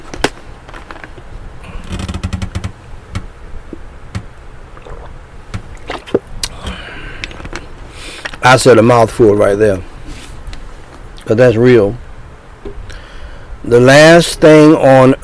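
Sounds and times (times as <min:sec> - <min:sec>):
person sipping and gulping water: 0:04.7 - 0:07.6
speech: 0:08.4 - 0:09.9, 0:11.3 - 0:12.0, 0:13.7 - 0:15.2.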